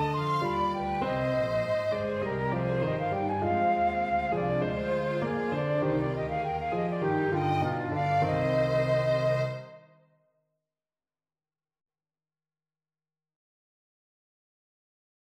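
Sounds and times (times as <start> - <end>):
accompaniment music with alternatives: 0.0 - 9.8.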